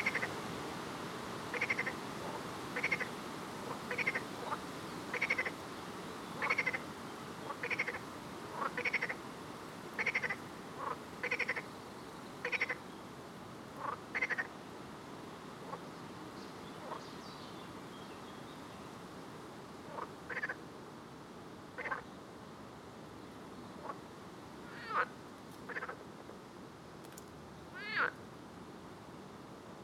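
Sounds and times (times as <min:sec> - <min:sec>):
frog pulsed croaking calls: 0:00.0 - 0:00.3, 0:01.5 - 0:02.0, 0:02.8 - 0:03.1, 0:03.9 - 0:05.6, 0:06.4 - 0:06.8, 0:07.5 - 0:08.0, 0:08.6 - 0:09.2, 0:10.0 - 0:11.6, 0:12.4 - 0:12.8, 0:13.8 - 0:14.5, 0:19.9 - 0:20.6, 0:21.8 - 0:22.0, 0:24.7 - 0:25.1, 0:25.7 - 0:26.0, 0:27.7 - 0:28.2
steady background hiss: 0:00.0 - 0:29.8.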